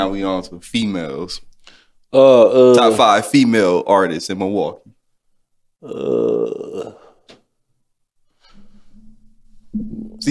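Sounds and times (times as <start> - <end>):
speech: 0.0 - 1.5, 2.1 - 5.0, 5.8 - 7.0, 9.8 - 10.2
man yawning: 2.2 - 2.8, 5.8 - 7.2.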